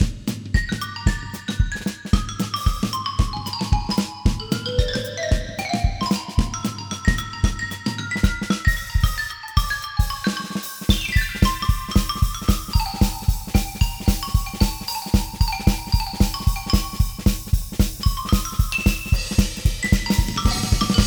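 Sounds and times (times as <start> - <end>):
battle percussion: 0.0 - 21.0.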